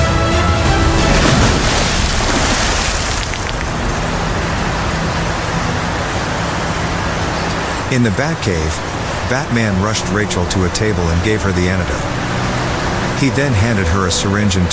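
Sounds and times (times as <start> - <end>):
vehicle splashing through a waterfall: 0.0 - 14.7
speech: 8.0 - 12.3, 13.2 - 14.7.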